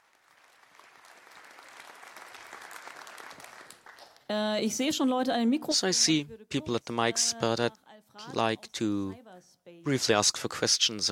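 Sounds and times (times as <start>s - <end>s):
audience applause: 0.0s - 4.3s
speech: 4.3s - 9.2s, 9.8s - 11.0s.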